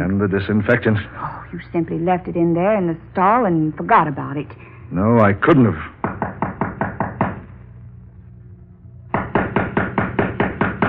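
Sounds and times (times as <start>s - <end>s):
speech: 0.0s - 5.9s
knocking on a door: 6.0s - 7.4s, 9.1s - 10.8s.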